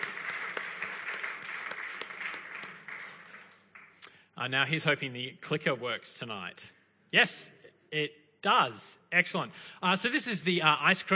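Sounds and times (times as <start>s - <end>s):
audience applause: 0.0s - 4.0s
speech: 4.4s - 11.1s.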